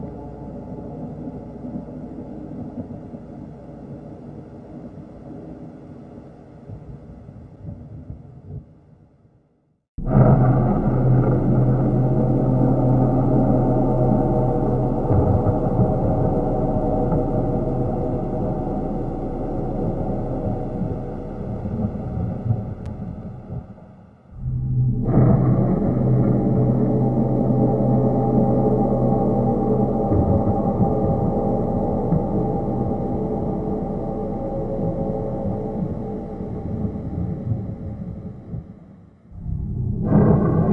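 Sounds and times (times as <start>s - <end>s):
water: 0.0s - 9.0s, 10.0s - 40.7s
gong: 10.0s - 23.5s, 24.4s - 38.4s, 39.4s - 40.7s
thunder: 10.0s - 23.8s, 24.4s - 38.8s, 39.4s - 40.7s.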